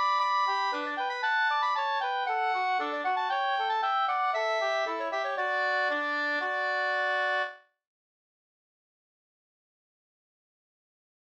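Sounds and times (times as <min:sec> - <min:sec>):
folk walking tune: 0:00.0 - 0:07.6.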